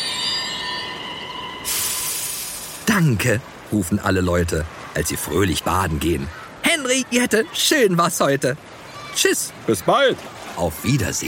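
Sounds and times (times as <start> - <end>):
train brakes squealing to a stop: 0.0 - 2.8
speech: 2.9 - 11.2.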